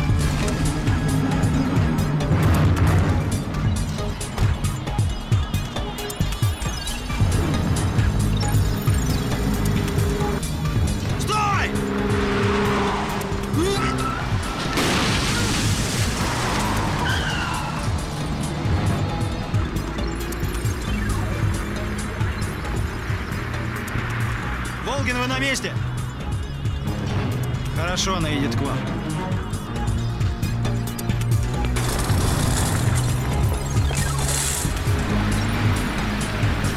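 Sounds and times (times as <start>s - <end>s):
car engine roaring: 0.0s - 6.0s, 7.0s - 36.7s
car ramming another car blocking the road: 14.5s - 16.5s.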